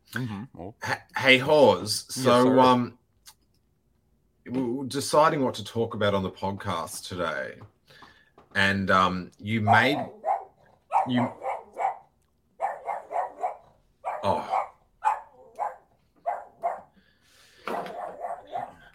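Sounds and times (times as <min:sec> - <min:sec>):
speech: 0:00.1 - 0:03.0, 0:04.5 - 0:07.8, 0:08.5 - 0:10.2, 0:11.0 - 0:11.4, 0:14.2 - 0:14.5
dog barking frantically at someone at the door: 0:09.6 - 0:17.0, 0:17.6 - 0:18.9.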